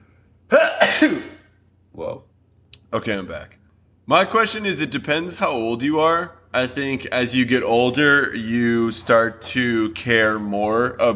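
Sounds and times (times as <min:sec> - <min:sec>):
person sneezing: 0:00.5 - 0:01.6
speech: 0:02.9 - 0:11.1.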